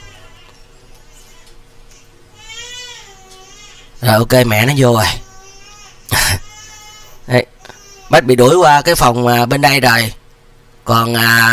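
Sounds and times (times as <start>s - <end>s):
baby crying in the next room: 0.0s - 4.0s, 5.0s - 8.3s
steady hum: 0.0s - 11.5s
speech: 4.0s - 5.2s, 7.3s - 7.5s, 8.1s - 10.2s, 10.9s - 11.5s.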